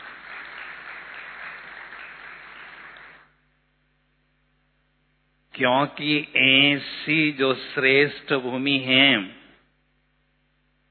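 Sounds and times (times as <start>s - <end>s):
audience applause: 0.0s - 3.3s
speech: 5.6s - 9.4s.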